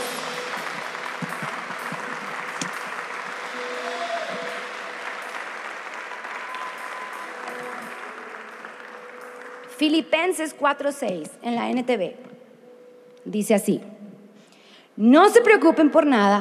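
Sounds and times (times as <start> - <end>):
loud audience applause: 0.0 - 9.8
speech: 9.8 - 12.3, 13.2 - 13.9, 15.0 - 16.4.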